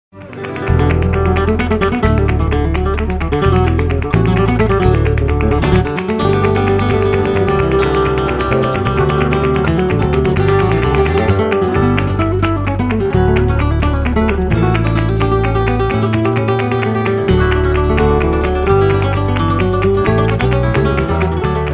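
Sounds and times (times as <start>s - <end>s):
flamenco falseta: 0.2s - 21.7s.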